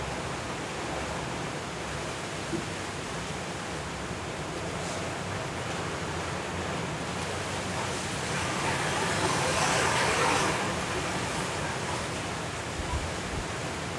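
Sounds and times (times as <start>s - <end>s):
hurricane rain in Los Cabos: 0.0s - 13.9s
Hurricane Kay wind in Los Cabos at midnight: 3.3s - 13.9s.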